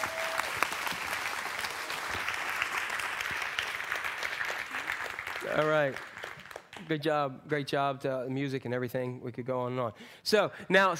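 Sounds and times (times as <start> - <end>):
audience applause: 0.0 - 6.9
speech: 5.6 - 6.1, 6.9 - 10.9.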